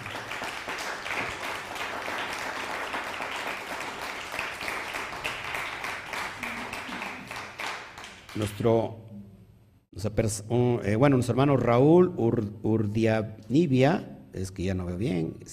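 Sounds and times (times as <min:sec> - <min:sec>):
audience applause: 0:00.0 - 0:08.5
speech: 0:08.4 - 0:09.1, 0:10.0 - 0:15.5.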